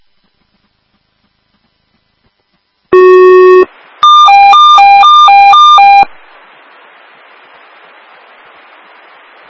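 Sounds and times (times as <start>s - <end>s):
fire department dispatch alert tone: 3.0s - 6.1s.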